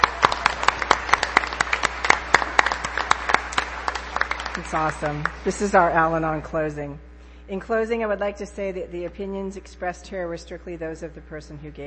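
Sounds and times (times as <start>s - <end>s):
crowd applause: 0.0s - 5.6s
speech: 4.6s - 11.8s.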